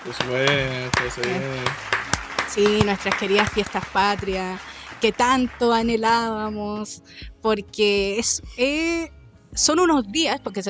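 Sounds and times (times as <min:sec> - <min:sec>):
sparse handclaps: 0:00.0 - 0:05.4
speech: 0:00.0 - 0:10.6.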